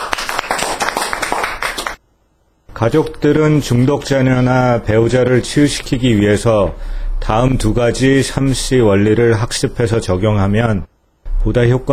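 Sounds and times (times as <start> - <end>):
audience clapping: 0.0 - 2.0
speech: 2.8 - 11.9.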